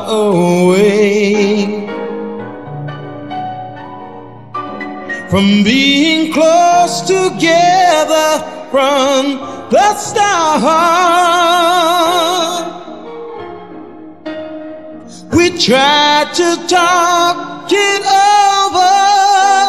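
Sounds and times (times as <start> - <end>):
person singing a verse: 0.0 - 2.3, 5.2 - 13.4, 15.0 - 19.6
piano: 0.0 - 19.6.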